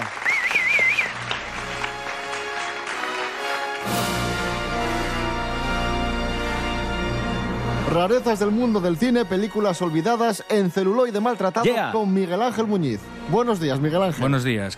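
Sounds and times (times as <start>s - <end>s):
crowd applause: 0.0s - 4.8s
wavering whistle: 0.1s - 1.2s
music: 0.2s - 14.7s
speech: 8.0s - 14.7s.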